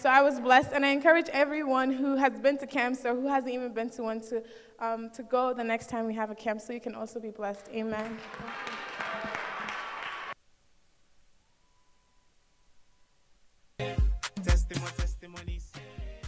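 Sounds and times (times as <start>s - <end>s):
speech: 0.0s - 8.8s
audience clapping: 7.6s - 10.4s
loud music with heavy bass and percussive hits: 13.8s - 16.2s.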